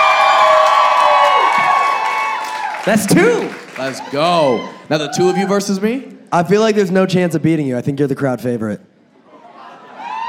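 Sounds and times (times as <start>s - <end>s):
live audience cheering: 0.0s - 5.8s
speech: 2.8s - 8.9s.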